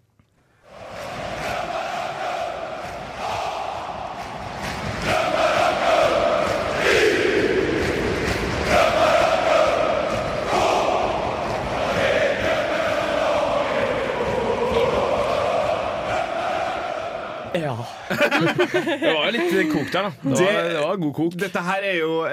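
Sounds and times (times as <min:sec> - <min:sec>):
football crowd chanting in stadium: 0:00.6 - 0:17.6
laughter: 0:18.0 - 0:20.5
speech: 0:18.6 - 0:22.3.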